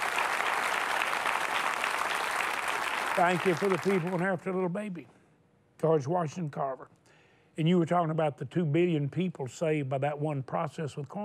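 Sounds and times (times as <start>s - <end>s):
audience applause: 0.0s - 4.4s
speech: 3.2s - 5.2s, 5.8s - 7.0s, 7.6s - 11.2s.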